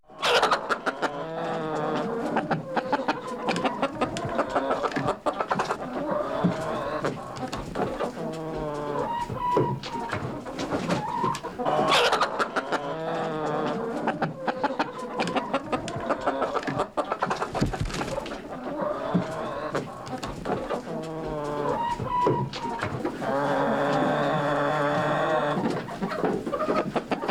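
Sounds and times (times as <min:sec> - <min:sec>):
chickens clucking: 0:00.1 - 0:27.2.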